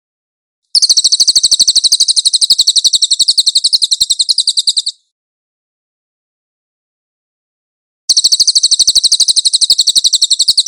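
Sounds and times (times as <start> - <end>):
Cililin chattering trill: 0.8 - 5.0, 8.1 - 10.6.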